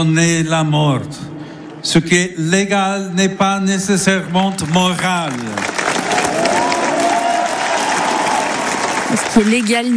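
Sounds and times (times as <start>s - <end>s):
speech: 0.0s - 5.7s, 9.1s - 9.9s
crowd of pilgrims applauding a speech: 4.3s - 9.9s.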